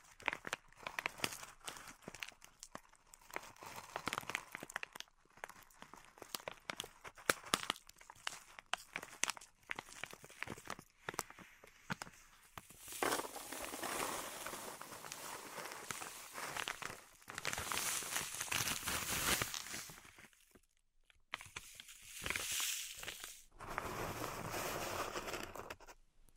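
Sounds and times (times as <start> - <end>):
pink salt in a zen garden crackling: 0.1 - 25.8
hissing scrapes of raking pink salt: 12.8 - 16.8.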